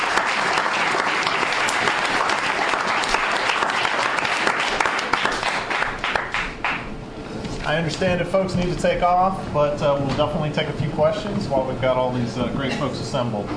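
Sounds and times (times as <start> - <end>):
audience applause: 0.0 - 6.9
speech: 7.7 - 13.5.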